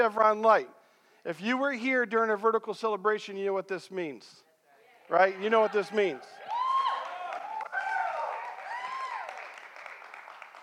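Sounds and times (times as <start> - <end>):
speech: 0.0 - 4.5, 5.1 - 6.4
people hooting and hollering: 5.4 - 9.4.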